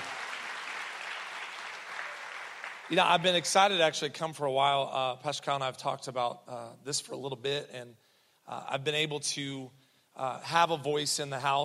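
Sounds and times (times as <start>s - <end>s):
crowd applauding: 0.0s - 3.7s
speech: 2.9s - 11.6s.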